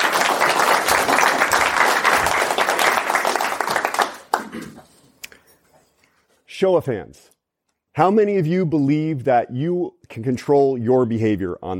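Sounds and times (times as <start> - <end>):
crowd applauding: 0.0 - 5.0
speech: 6.6 - 7.4, 8.0 - 11.7.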